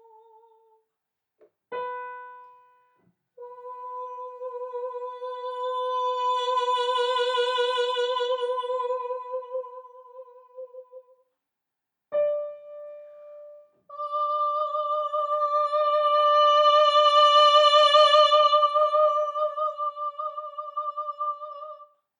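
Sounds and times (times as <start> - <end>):
person singing a sustained vowel messa di voce: 3.4 - 11.0, 13.9 - 21.9.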